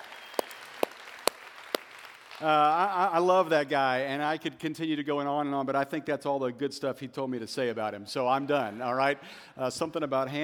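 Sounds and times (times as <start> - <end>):
hand claps: 0.0 - 2.7
speech: 2.4 - 10.4.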